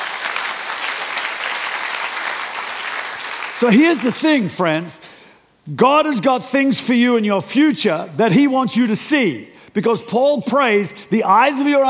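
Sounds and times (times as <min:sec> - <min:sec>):
audience clapping: 0:00.0 - 0:04.2
speech: 0:03.6 - 0:05.1, 0:05.7 - 0:11.8.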